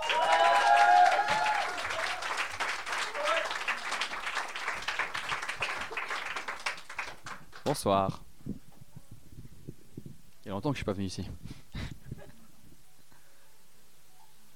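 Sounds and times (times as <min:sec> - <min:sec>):
audience applause: 0:00.0 - 0:07.8
speech: 0:07.7 - 0:08.2, 0:10.5 - 0:11.4.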